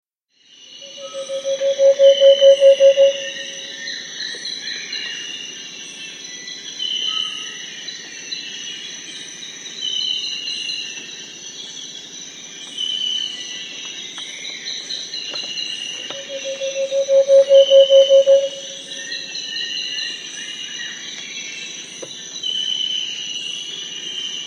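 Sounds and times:
variegated antpitta song in South America: 0:00.9 - 0:03.6, 0:16.0 - 0:19.0.

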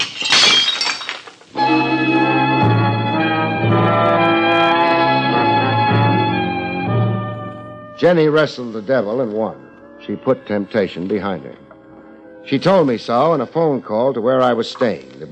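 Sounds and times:
dish smashing: 0:00.0 - 0:01.6
sustained musical chords: 0:01.5 - 0:15.3
speech: 0:08.0 - 0:11.6, 0:12.4 - 0:15.3.

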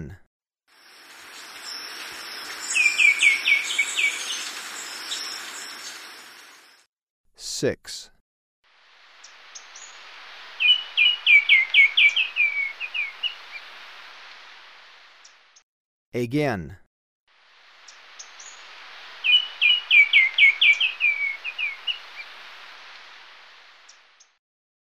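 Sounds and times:
White-winged Becard calling in Ecuador: 0:01.6 - 0:06.0, 0:10.6 - 0:13.8, 0:17.9 - 0:22.5.

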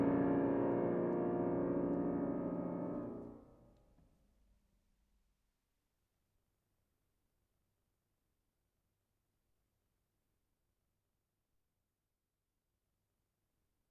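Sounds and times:
piano sonata finale presto: 0:00.0 - 0:03.4.

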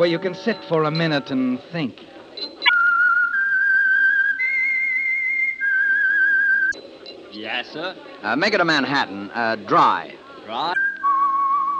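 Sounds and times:
speech: 0:00.0 - 0:02.2, 0:07.4 - 0:10.8
person whistling a melody: 0:02.6 - 0:06.8, 0:10.8 - 0:11.7.

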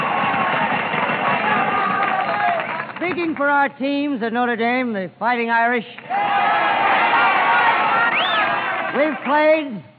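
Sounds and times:
crowd cheering for the Notre Dame Fighting Irish: 0:00.0 - 0:03.0, 0:06.0 - 0:09.4
speech: 0:03.2 - 0:06.5, 0:08.9 - 0:09.9.

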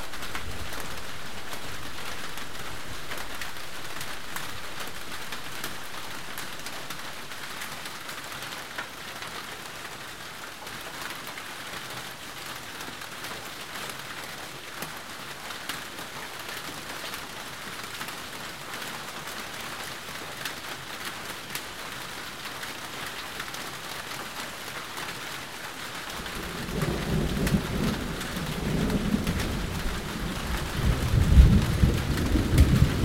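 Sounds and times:
rain: 0:00.0 - 0:33.0
thunder: 0:26.2 - 0:33.0.

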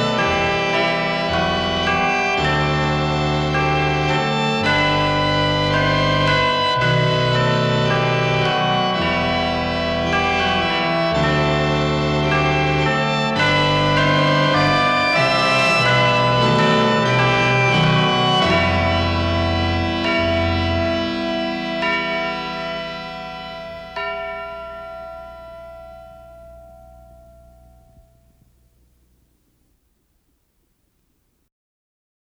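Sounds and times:
Christmas organ: 0:00.0 - 0:29.8
Christmas chimes: 0:23.7 - 0:29.4.

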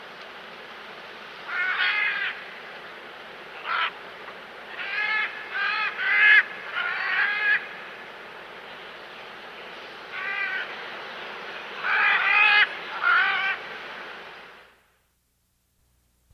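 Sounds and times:
great green macaw from South America: 0:01.5 - 0:02.4, 0:03.6 - 0:04.0, 0:04.7 - 0:07.7, 0:10.1 - 0:10.8, 0:11.8 - 0:13.6.

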